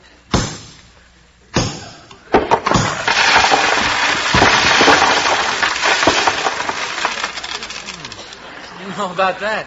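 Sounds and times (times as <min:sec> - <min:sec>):
plaster wall crumbling: 0:02.3 - 0:08.4
speech: 0:09.0 - 0:09.6.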